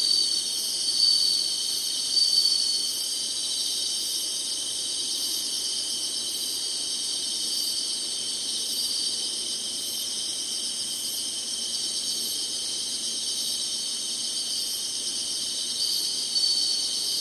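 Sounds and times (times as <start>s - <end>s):
shrill insect chorus: 0.0s - 17.1s.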